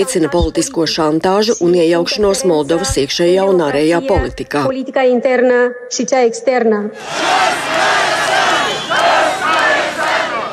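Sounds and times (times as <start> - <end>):
speech: 0.0 - 8.0
protest crowd chanting at demonstration: 7.0 - 10.5.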